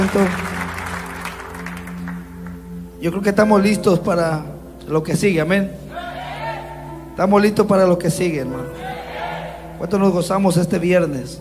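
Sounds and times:
speech: 0.0 - 0.5, 3.0 - 5.8, 7.2 - 8.9, 9.8 - 11.3
audience applause: 0.0 - 2.2.

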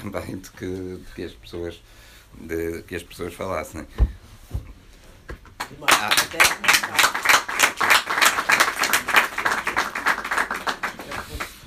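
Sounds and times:
speech: 0.0 - 4.7, 5.7 - 7.3
audience clapping: 5.5 - 11.6.

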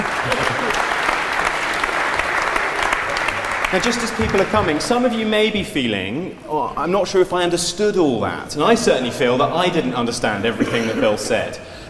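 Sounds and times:
audience applause: 0.0 - 5.4
speech: 3.7 - 11.7.

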